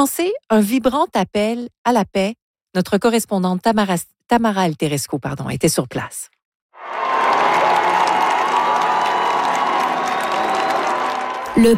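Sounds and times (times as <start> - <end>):
speech: 0.0 - 7.0, 11.6 - 11.7
crowd of faithful at open-air papal mass in Metz applauding the pope: 6.8 - 11.7.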